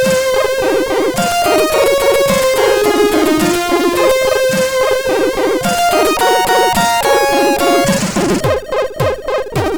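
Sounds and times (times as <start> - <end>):
Amiga MOS6581R4 SID sound chip music: 0.0 - 9.7.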